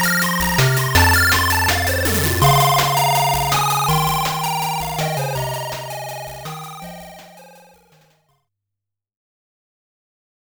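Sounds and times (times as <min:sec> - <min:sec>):
8-bit music: 0:00.0 - 0:08.0.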